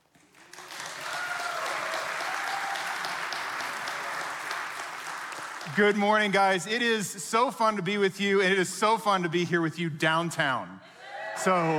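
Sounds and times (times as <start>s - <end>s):
audience applause welcoming a speaker: 0.0s - 6.6s
speech: 5.7s - 11.7s.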